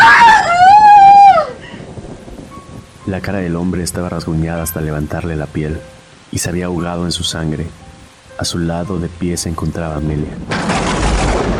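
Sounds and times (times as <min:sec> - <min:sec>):
shrill scream of terror: 0:00.0 - 0:01.8
speech: 0:03.1 - 0:10.8.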